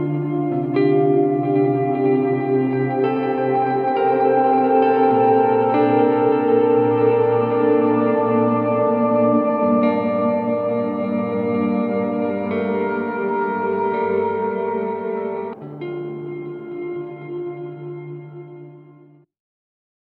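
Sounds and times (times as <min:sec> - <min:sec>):
ambient guitar soundscape: 0:00.0 - 0:19.3.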